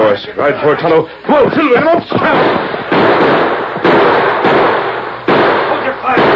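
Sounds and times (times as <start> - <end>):
rushing hissing noise: 0.0 - 6.3
speech: 0.1 - 3.5
rifle gunshots: 2.1 - 6.3.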